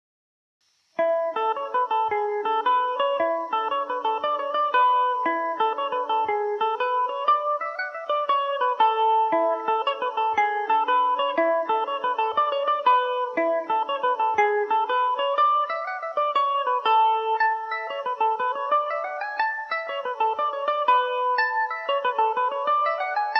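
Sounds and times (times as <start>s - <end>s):
Irish mandolin in A major: 1.0s - 23.3s.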